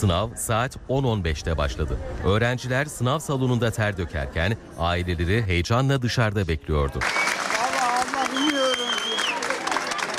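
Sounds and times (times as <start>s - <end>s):
speech: 0.0s - 7.3s
families applauding students after an exam: 7.0s - 10.1s.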